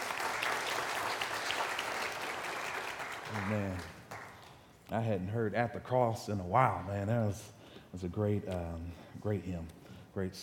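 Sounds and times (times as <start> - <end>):
crowd clapping: 0.0 - 4.7
speech: 3.3 - 4.0, 4.9 - 10.4.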